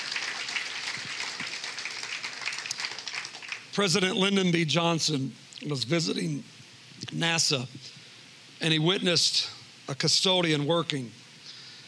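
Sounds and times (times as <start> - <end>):
audience applause: 0.0 - 3.8
speech: 3.8 - 7.9, 8.6 - 11.2.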